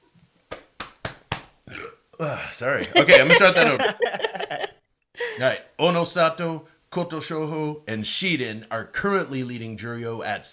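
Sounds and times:
burp: 1.7 - 2.5
speech: 1.7 - 4.7, 5.4 - 10.5
laughter: 2.7 - 4.7.

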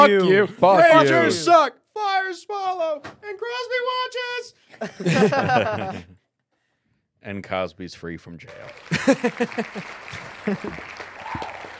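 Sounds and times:
speech: 0.0 - 6.1, 7.2 - 11.5
laughter: 4.8 - 6.2, 8.9 - 11.0
applause sound effect: 8.4 - 11.7.

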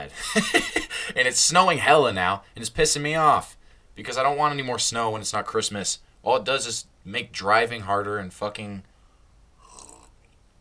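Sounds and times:
speech: 0.0 - 8.9
person slurping a drink: 9.6 - 10.2.

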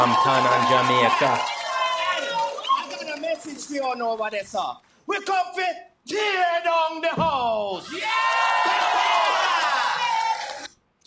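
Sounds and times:
speech: 0.0 - 1.6, 3.6 - 9.4
crowd cheering and clapping: 0.0 - 4.3, 7.8 - 10.8.

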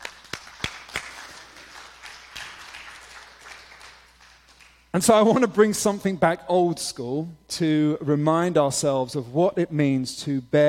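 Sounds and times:
audience applause: 0.0 - 4.8
speech: 5.0 - 10.6.

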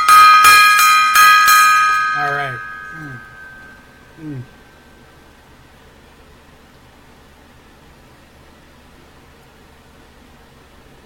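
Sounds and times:
bell rung for a salute: 0.0 - 4.1.

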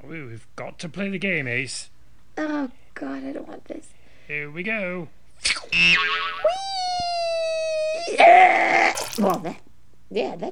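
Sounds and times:
speech: 0.0 - 7.2, 8.1 - 10.5
cartoon boing of a flicked character bouncing off a game chip: 5.8 - 6.9.

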